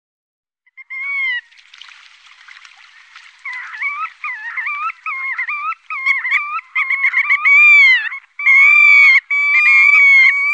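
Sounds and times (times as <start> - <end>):
black-tailed godwit giving nasal upslurred calls: 3.0 - 10.5.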